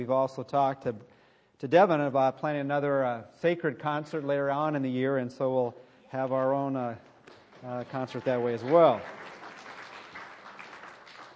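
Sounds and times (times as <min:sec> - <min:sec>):
speech: 0:00.0 - 0:09.3
audience clapping: 0:07.2 - 0:11.3.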